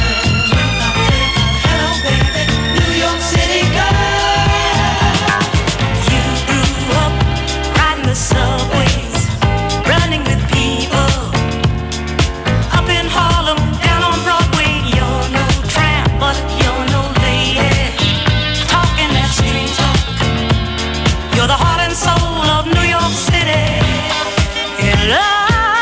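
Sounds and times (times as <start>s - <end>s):
disco music: 0.0s - 25.7s.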